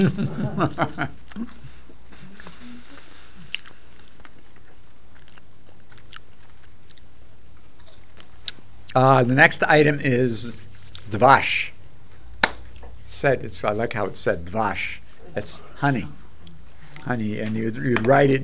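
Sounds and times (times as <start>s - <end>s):
speech: 0.0s - 1.6s, 9.0s - 11.7s, 13.1s - 16.2s, 17.0s - 18.4s
laughter: 0.0s - 1.7s
crunchy bites and chewing of peppers dressed in olive oil: 3.5s - 9.0s.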